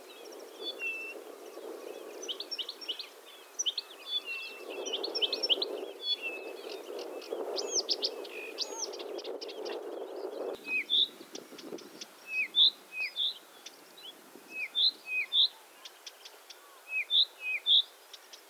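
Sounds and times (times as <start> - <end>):
Blyth's reed warbler song: 0.0 - 18.4.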